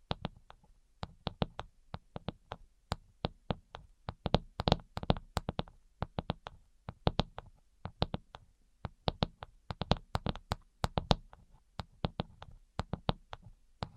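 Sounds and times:
finger tapping: 0.0s - 13.9s.

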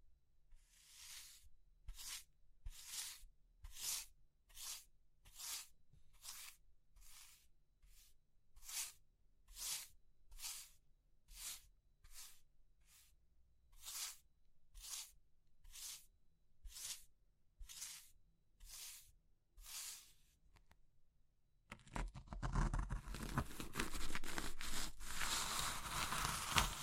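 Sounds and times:
crushing soft crumbly material: 21.7s - 26.8s.

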